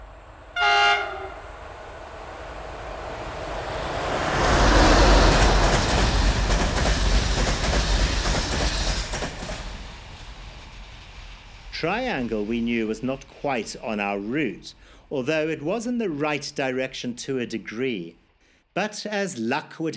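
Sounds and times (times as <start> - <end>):
massive steam locomotive train running: 0.0 - 16.0
massive locomotive horn blast: 0.5 - 1.5
speech: 11.8 - 18.2, 18.8 - 19.9.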